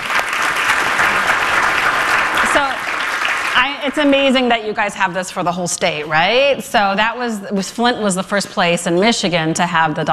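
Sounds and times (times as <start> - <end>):
audience applause: 0.0 - 4.4
speech: 3.6 - 10.1.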